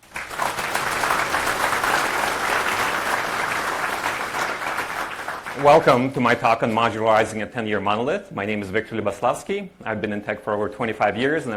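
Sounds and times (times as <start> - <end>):
audience round of applause: 0.0 - 6.4
speech: 5.6 - 11.5.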